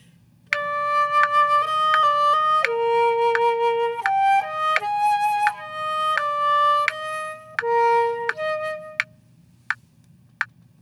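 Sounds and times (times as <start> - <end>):
wind instrument duet: 0.5 - 9.1.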